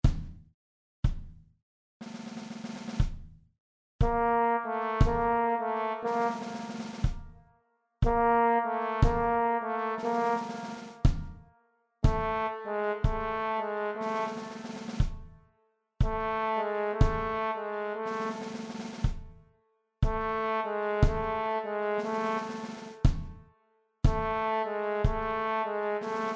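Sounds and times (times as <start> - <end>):
trombone: 4.0 - 7.2, 8.0 - 11.3, 12.0 - 15.2, 16.0 - 19.1, 20.0 - 23.1, 24.1 - 26.3.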